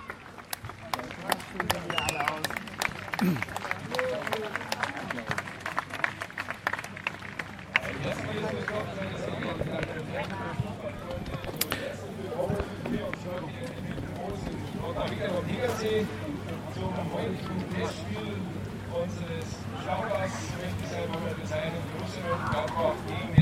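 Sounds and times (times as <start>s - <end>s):
people talking: 0.0s - 5.4s, 7.8s - 23.3s
crowd clapping at the Birkenmoos stadium in Rottach-Egern on the Tegernsee: 0.0s - 10.4s.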